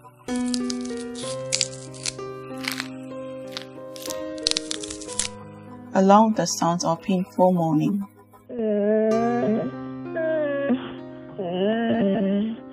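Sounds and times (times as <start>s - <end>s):
steady sustained musical drone: 0.0s - 12.7s
bones breaking: 0.3s - 5.4s
flesh tearing: 0.3s - 5.4s
speech: 6.0s - 8.7s.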